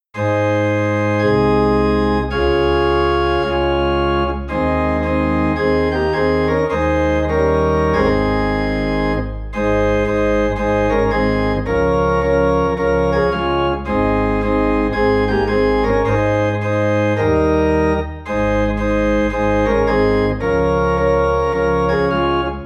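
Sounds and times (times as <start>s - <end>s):
organ in A flat: 0.2s - 22.6s.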